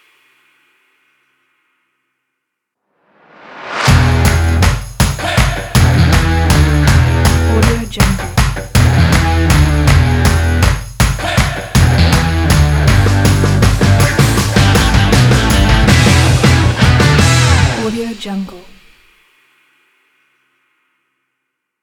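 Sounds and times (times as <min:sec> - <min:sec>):
indie rock drum kit: 0:03.9 - 0:10.8, 0:11.4 - 0:17.9.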